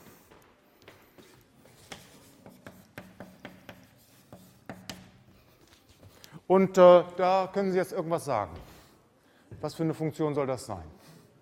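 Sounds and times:
writing out a two-dimensional function example in a lecture: 1.2 - 6.2
speech: 6.5 - 8.7, 9.6 - 11.0.

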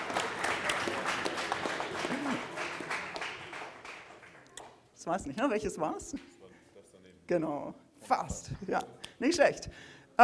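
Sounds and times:
applause: 0.0 - 4.8
speech: 5.1 - 6.4, 7.3 - 10.2.

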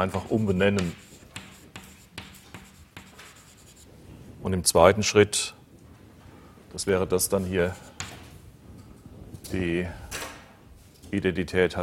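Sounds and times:
speech: 0.0 - 1.0, 4.5 - 5.6, 6.7 - 7.9, 9.5 - 10.1, 11.1 - 11.8
handwriting scratches: 0.1 - 3.9.

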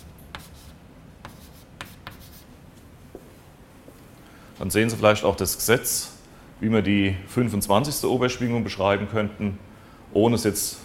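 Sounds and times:
handwriting during a physics lecture: 0.0 - 2.5
speech: 4.6 - 10.8.

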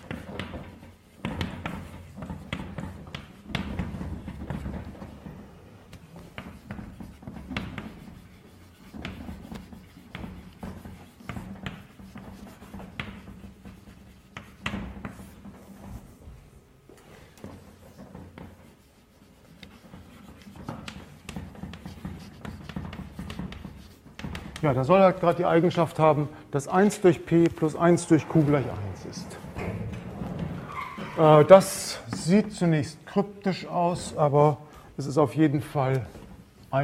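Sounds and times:
writing on a board during a mathematics lecture: 0.0 - 16.4, 17.0 - 25.4
speech: 24.6 - 29.3, 31.2 - 36.8.

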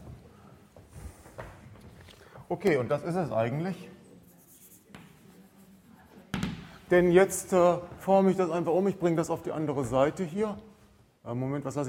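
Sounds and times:
speech: 2.5 - 4.0, 6.9 - 11.8
handwriting scratching as someone writes a math expression: 4.2 - 6.3.

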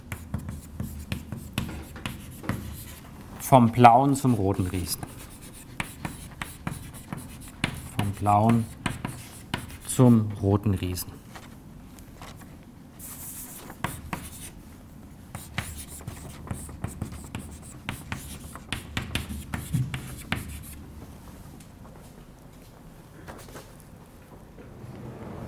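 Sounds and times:
lecturer writing on a board during an astronomy lecture: 0.0 - 3.1, 4.2 - 10.2, 13.0 - 14.6, 15.3 - 20.8
speech: 3.5 - 5.2, 8.2 - 8.8, 10.0 - 11.2.

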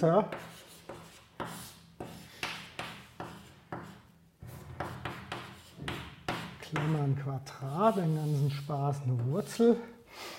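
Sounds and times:
speech: 0.0 - 0.6, 6.7 - 10.0
pen strokes hand-writing an integral: 0.3 - 6.9.

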